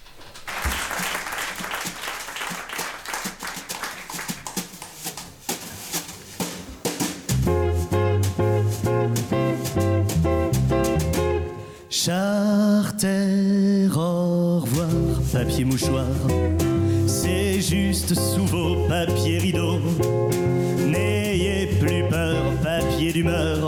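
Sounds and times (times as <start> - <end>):
lively applause: 0.0 - 5.2
French chanson with loud steady accompaniment: 5.8 - 23.6
speech: 15.6 - 16.6.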